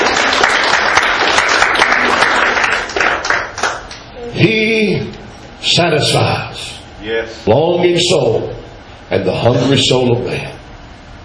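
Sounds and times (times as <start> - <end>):
audience hand clapping: 0.0 - 4.1
speech: 4.4 - 4.6, 5.8 - 10.6.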